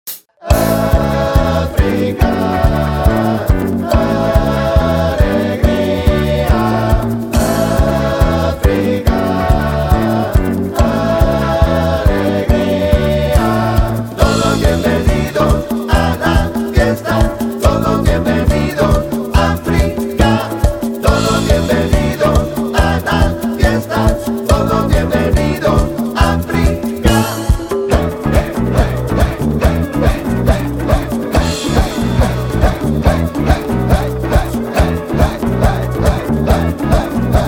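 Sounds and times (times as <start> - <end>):
Latin band playing: 0.4 - 37.4.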